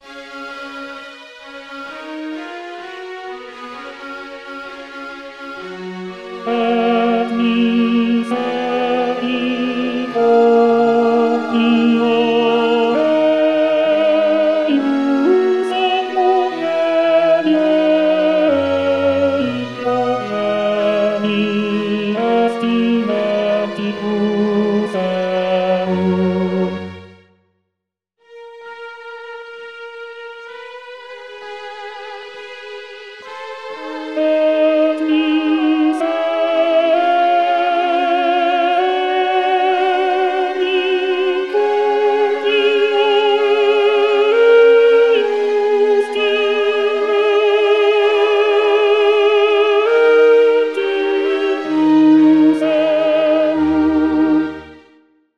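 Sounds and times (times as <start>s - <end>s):
choral singing: 5.6s - 26.3s, 31.4s - 54.7s.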